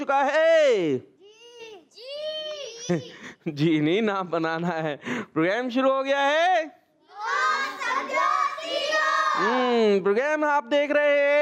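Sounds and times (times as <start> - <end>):
speech: 0.0 - 1.1, 2.9 - 6.8, 9.4 - 11.4
group of children shouting loudly together: 7.1 - 9.6.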